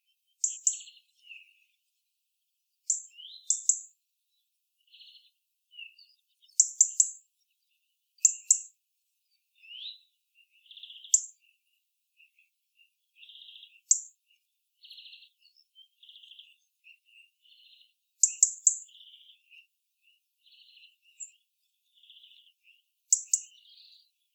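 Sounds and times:
European robin ticking calls: 0:00.4 - 0:01.5, 0:02.9 - 0:03.9, 0:05.9 - 0:07.2, 0:08.2 - 0:08.7, 0:09.6 - 0:11.6, 0:13.2 - 0:14.2, 0:14.8 - 0:24.0.

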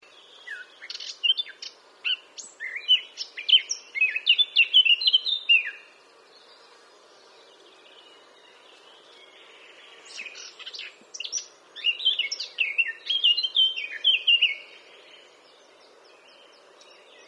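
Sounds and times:
Eurasian blackcap singing: 0:00.1 - 0:05.9, 0:10.1 - 0:14.8.

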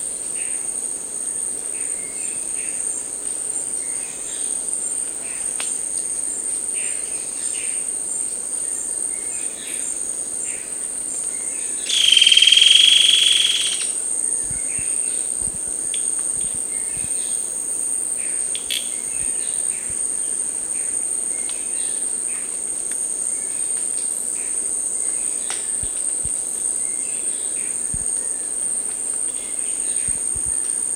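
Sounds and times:
buzzy bird call: 0:11.9 - 0:14.0.

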